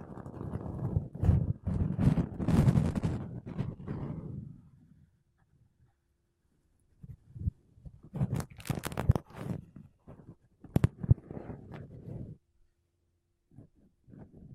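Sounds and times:
makeup brushes and a sponge rubbing over a microphone: 0.1 - 4.5, 7.0 - 12.4, 13.5 - 14.5.

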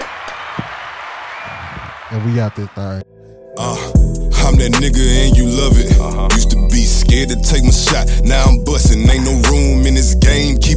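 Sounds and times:
round of applause: 0.0 - 3.0
speech: 2.1 - 10.7.

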